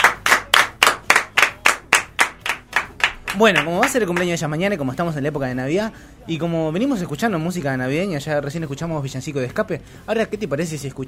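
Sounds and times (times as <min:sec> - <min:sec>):
hand clapping in the studio: 0:00.0 - 0:04.4
speech: 0:03.4 - 0:11.0.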